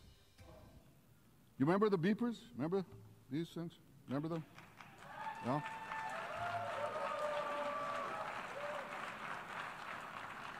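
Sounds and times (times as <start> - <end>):
speech: 1.6 - 4.7, 5.4 - 5.8
applause from assembly audience at United Nations General Assembly: 4.6 - 10.5.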